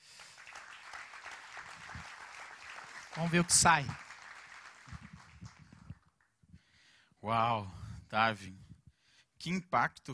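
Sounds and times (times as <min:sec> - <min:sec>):
audience applause: 0:00.0 - 0:06.2
speech: 0:03.2 - 0:04.0, 0:07.3 - 0:08.6, 0:09.4 - 0:10.1.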